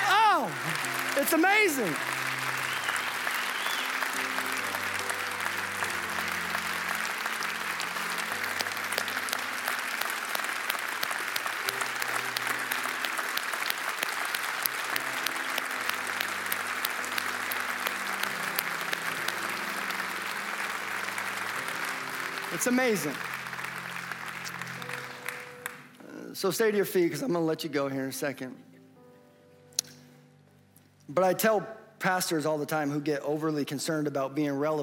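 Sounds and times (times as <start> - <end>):
crowd applauding and cheering: 0.0 - 25.1
speech: 1.2 - 2.2, 22.6 - 23.2, 26.4 - 28.7, 31.2 - 34.8.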